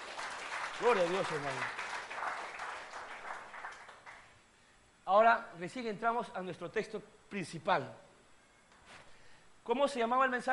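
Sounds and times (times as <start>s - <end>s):
audience applause: 0.0s - 4.3s
speech: 0.8s - 1.8s, 5.1s - 8.0s, 9.6s - 10.5s.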